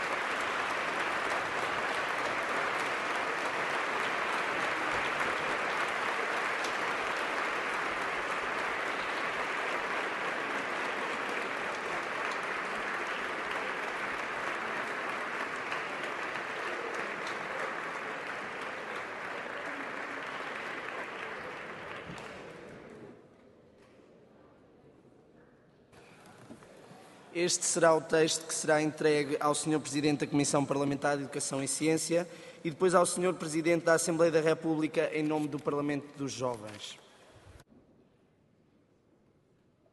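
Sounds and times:
large crowd applause: 0:00.0 - 0:22.9
speech: 0:27.4 - 0:37.0.

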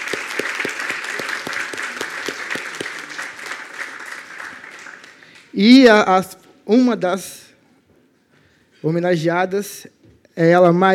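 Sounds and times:
audience applause: 0:00.0 - 0:05.5
speech: 0:05.6 - 0:07.4, 0:08.8 - 0:10.9.

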